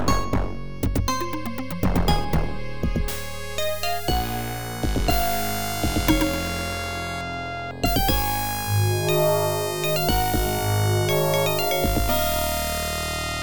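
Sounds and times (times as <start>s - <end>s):
winning jingle: 0.1s - 13.3s.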